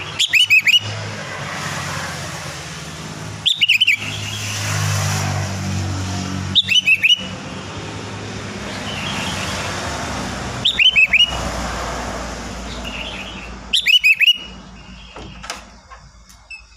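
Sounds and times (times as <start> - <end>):
sooty-headed bulbul song: 0.0 - 1.1, 3.2 - 4.6, 6.5 - 7.6, 8.6 - 11.7, 12.6 - 15.6
low traffic hum: 0.0 - 16.7.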